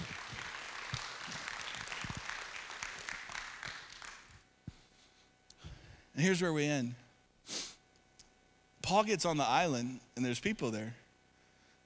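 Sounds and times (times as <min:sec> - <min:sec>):
audience applause: 0:00.0 - 0:04.4
speech: 0:06.2 - 0:07.0, 0:08.9 - 0:11.0.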